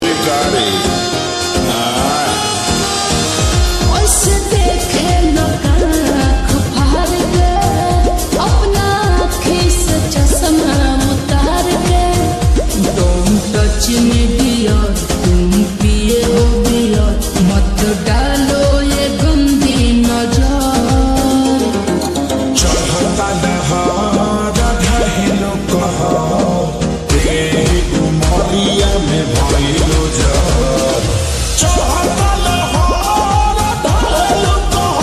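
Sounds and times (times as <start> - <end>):
slowed lo-fi music with reverb: 0.0 - 35.0.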